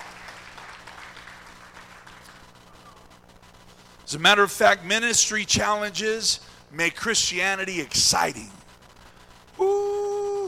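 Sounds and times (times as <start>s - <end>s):
audience hand clapping: 0.0s - 3.1s
speech: 4.1s - 8.6s.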